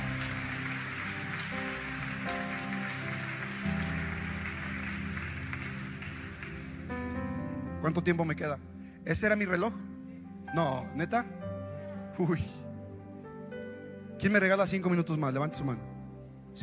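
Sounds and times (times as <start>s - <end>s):
loud applause: 0.0s - 7.0s
speech: 7.9s - 9.8s, 10.5s - 11.4s, 12.2s - 12.6s, 14.2s - 15.9s.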